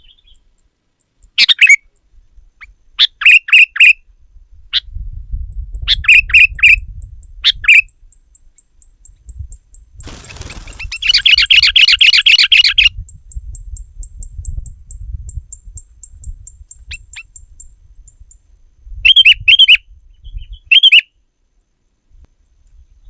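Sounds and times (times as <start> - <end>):
Sooty-headed bulbul singing: 0.0 - 21.3, 22.1 - 23.0
brief noisy rustle: 10.0 - 12.8.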